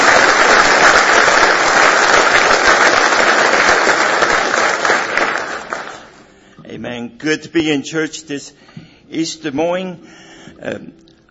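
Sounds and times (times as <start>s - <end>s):
audience hand clapping: 0.0s - 6.2s
speech: 7.2s - 11.1s.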